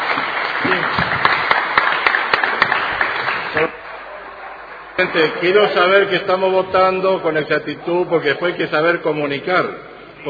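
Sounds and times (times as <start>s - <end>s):
audience applause: 0.0s - 5.6s
speech: 5.0s - 10.2s.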